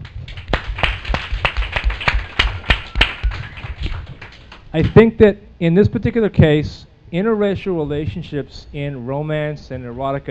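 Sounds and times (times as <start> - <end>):
audience clapping: 0.0 - 5.0
speech: 4.7 - 10.3.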